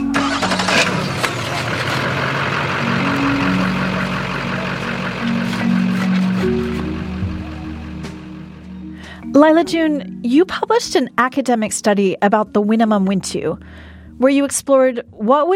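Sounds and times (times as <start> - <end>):
truck engine idling: 0.0 - 9.3
speech: 9.4 - 15.5.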